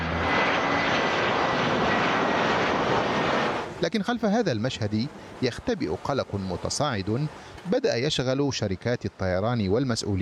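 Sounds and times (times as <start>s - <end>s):
aircraft engine roar of planes taking off and landing at Brussels Airport: 0.0s - 6.6s
speech: 3.8s - 10.2s.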